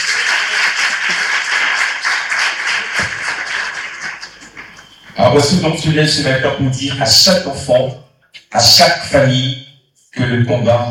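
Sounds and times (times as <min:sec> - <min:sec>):
audience applause: 0:00.0 - 0:05.2
speech: 0:05.3 - 0:09.6, 0:10.2 - 0:10.9.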